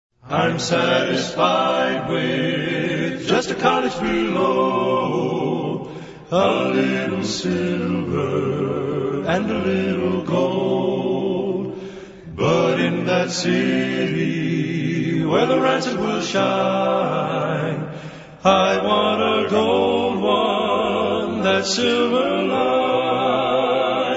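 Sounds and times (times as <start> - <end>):
a cappella hymn: 0.2 - 24.1.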